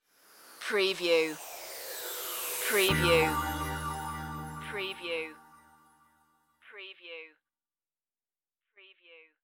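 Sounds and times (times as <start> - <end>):
beach side musical stinger: 0.4 - 6.1.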